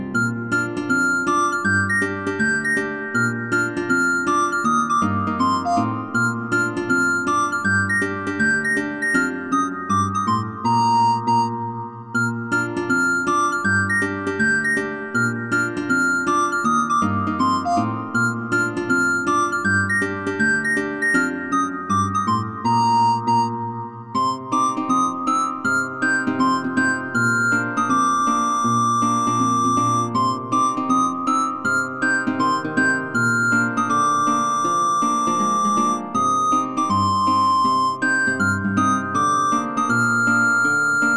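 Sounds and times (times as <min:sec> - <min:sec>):
recorder playing: 0:00.1 - 0:41.1.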